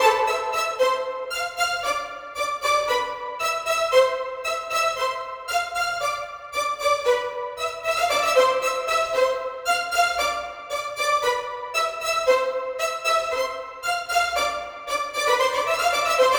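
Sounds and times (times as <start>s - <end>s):
violin: 0.0s - 16.3s.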